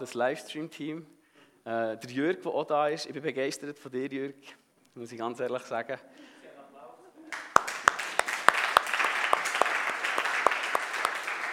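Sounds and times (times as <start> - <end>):
speech: 0.0 - 6.3
audience applause: 7.3 - 11.5.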